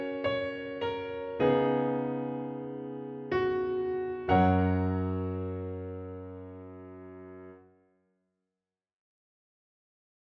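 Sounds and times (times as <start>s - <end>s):
piano piece: 0.0s - 7.7s.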